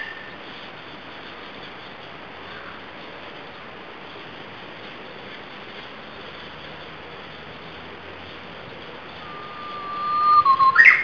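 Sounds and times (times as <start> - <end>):
Japanese nightingale note: 9.2 - 11.0.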